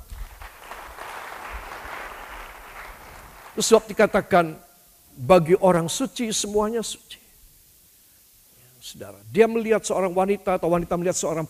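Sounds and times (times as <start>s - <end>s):
audience applauding: 0.0s - 3.8s
speech: 3.6s - 4.6s, 5.2s - 7.2s, 8.8s - 11.4s.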